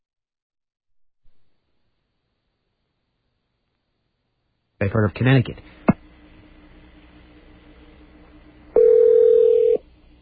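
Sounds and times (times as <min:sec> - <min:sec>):
speech: 0:04.8 - 0:05.9
telephone ringing heard through the line: 0:08.8 - 0:09.8.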